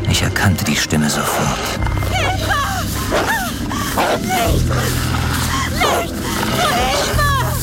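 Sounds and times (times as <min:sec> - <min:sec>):
low rumbling drone: 0:00.0 - 0:07.6
speech: 0:00.2 - 0:05.2
pack of wolves snarling and yelping: 0:02.0 - 0:07.6.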